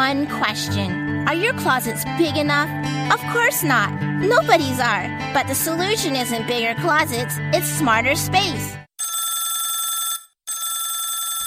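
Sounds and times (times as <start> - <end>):
speech: 0.1 - 8.8
telephone ringing: 9.0 - 11.4.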